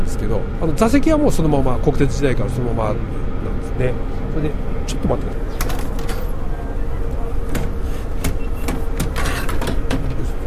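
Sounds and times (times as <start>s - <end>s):
speech: 0.1s - 5.7s
inner window frame of an old JNR-era train car clicking and rattling: 5.6s - 6.3s, 7.5s - 10.3s.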